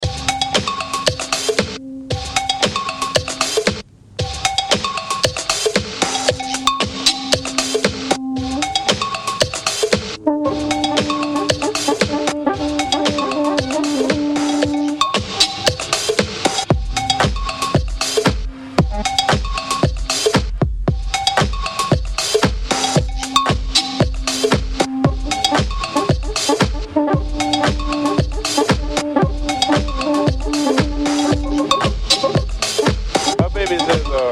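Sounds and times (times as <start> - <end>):
music loop: 0.0 - 34.3.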